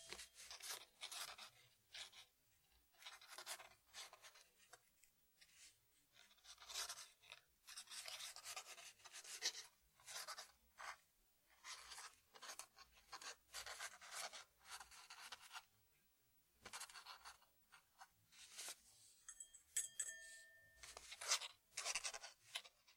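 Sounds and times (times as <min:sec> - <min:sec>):
quill pen writing: 0:00.1 - 0:04.8, 0:05.4 - 0:15.7, 0:16.6 - 0:18.8, 0:20.8 - 0:22.9.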